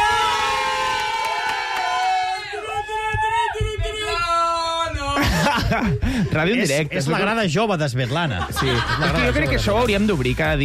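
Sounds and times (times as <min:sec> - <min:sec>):
live radio studio audience cheering and shouting in celebration: 0:00.0 - 0:05.2
laughter: 0:05.0 - 0:06.9, 0:07.9 - 0:10.2
speech: 0:05.7 - 0:10.6.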